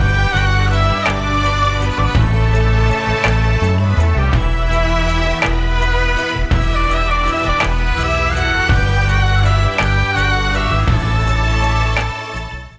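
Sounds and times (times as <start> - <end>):
instrumental music: 0.0 - 12.7.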